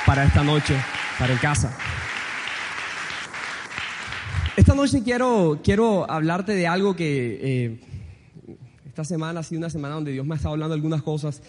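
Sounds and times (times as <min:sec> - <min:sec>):
audience applause: 0:00.0 - 0:04.9
speech: 0:00.1 - 0:02.1, 0:04.6 - 0:07.9, 0:08.5 - 0:11.4.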